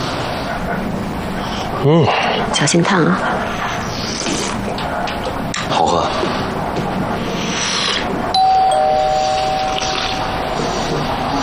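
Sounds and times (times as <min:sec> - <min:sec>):
steady rushing noise: 0:00.0 - 0:11.4
speech: 0:01.8 - 0:03.7
two-note doorbell ding-dong: 0:08.4 - 0:10.2.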